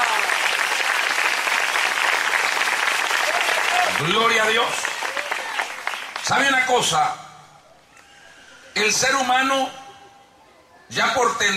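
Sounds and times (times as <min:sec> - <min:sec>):
church audience applause: 0:00.0 - 0:06.6
speech: 0:04.0 - 0:04.9, 0:06.3 - 0:07.2, 0:08.8 - 0:09.8, 0:10.9 - 0:11.5.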